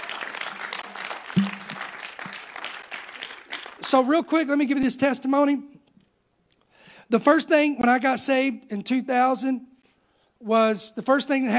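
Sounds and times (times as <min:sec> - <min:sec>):
audience clapping hands: 0:00.0 - 0:04.4
speech: 0:03.9 - 0:05.7, 0:07.1 - 0:09.7, 0:10.4 - 0:11.5.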